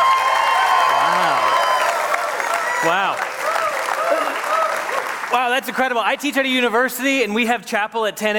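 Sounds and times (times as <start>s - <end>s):
crowd making an obnoxious noise in welcoming: 0.0s - 5.4s
speech: 5.6s - 8.3s.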